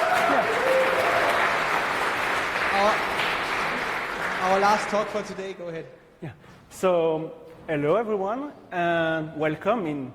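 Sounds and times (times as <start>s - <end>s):
audience applause for the final talk of the day: 0.0s - 5.5s
speech: 4.5s - 10.1s.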